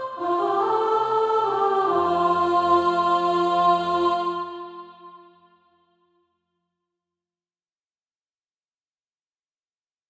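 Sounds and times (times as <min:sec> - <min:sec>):
soprano singing SATB practice music: 0:00.0 - 0:05.4.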